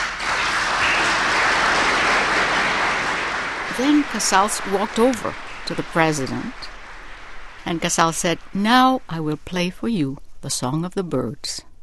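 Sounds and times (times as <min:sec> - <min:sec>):
explosive applause: 0:00.0 - 0:08.6
speech: 0:03.8 - 0:06.8, 0:07.6 - 0:11.7.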